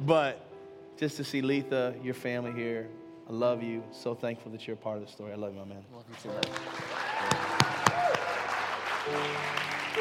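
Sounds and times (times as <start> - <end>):
speech: 0.1 - 0.4, 1.0 - 7.6, 9.0 - 9.9
audience applause at a one-year anniversary gathering: 6.2 - 9.9.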